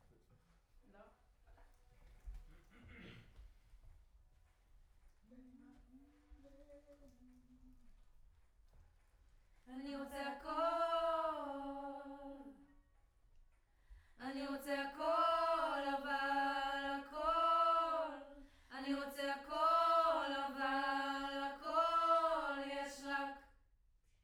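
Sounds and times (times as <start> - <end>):
distant choir: 9.8 - 12.7, 14.2 - 23.4.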